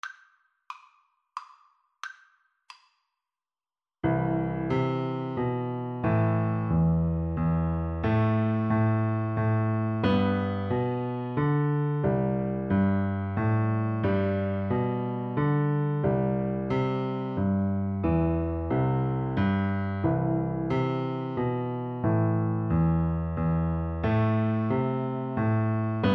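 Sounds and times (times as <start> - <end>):
piano duet: 4.0 - 26.1.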